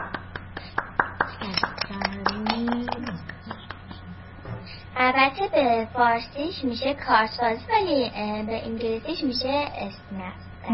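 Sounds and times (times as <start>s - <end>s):
small group of children clapping hands: 0.0s - 3.9s
speech: 5.0s - 10.7s.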